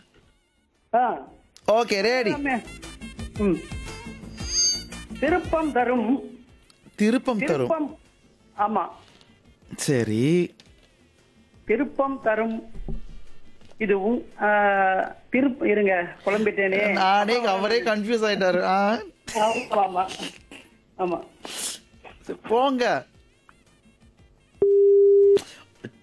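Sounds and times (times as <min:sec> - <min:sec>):
speech: 0:00.9 - 0:03.8, 0:05.2 - 0:06.3, 0:07.0 - 0:08.0, 0:08.6 - 0:09.0, 0:09.7 - 0:10.6, 0:11.7 - 0:12.8, 0:13.8 - 0:20.4, 0:21.0 - 0:23.1, 0:25.8 - 0:26.0
telephone busy tone after a phone-in caller's line drops: 0:04.3 - 0:05.0, 0:24.6 - 0:25.4.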